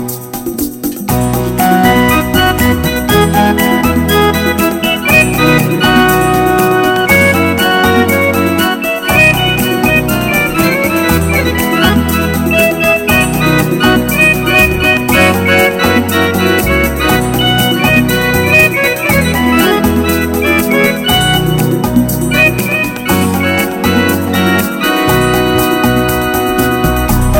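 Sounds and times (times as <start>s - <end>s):
unplugged song: 0.0s - 27.3s.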